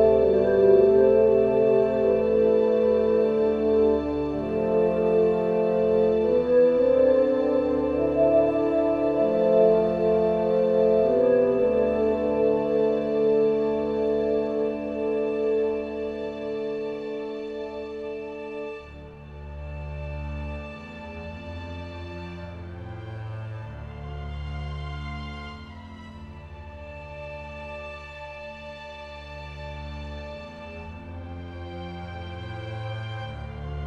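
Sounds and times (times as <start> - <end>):
ambience: 0.0 - 18.8.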